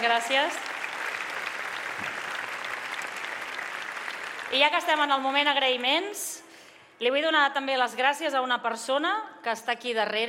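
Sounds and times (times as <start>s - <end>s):
speech: 0.0s - 0.8s, 4.5s - 6.4s, 7.0s - 10.2s
audience applause during a town festival proclamation speech: 0.0s - 5.6s.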